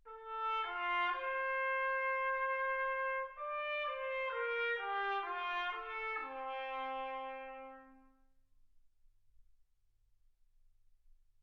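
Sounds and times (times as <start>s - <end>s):
trumpet: 0.0s - 8.4s.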